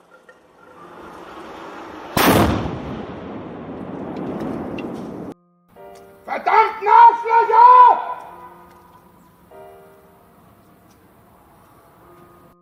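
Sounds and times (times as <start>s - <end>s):
firecracker exploding in a courtyard: 1.5s - 5.4s
person shouting agitatedly: 6.3s - 8.6s.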